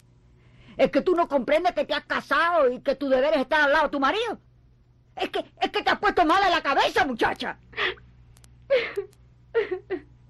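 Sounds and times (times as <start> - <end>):
speech: 0.8 - 4.5, 5.2 - 8.0
woman crying: 8.7 - 10.2.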